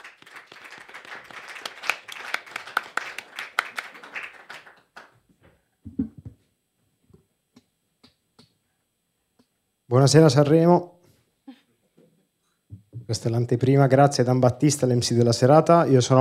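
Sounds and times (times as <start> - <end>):
audience applause: 0.0 - 5.2
speech: 9.9 - 10.9, 13.1 - 16.1.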